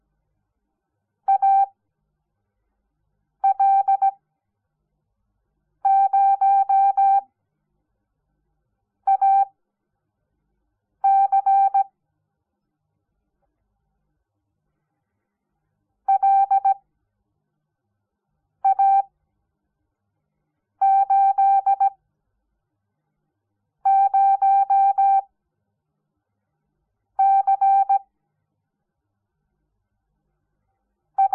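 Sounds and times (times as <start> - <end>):
morse code beeps: 1.3 - 1.7, 3.4 - 4.1, 5.9 - 7.2, 9.1 - 9.5, 11.1 - 11.9, 16.1 - 16.8, 18.7 - 19.1, 20.8 - 22.0, 23.9 - 25.2, 27.2 - 28.0.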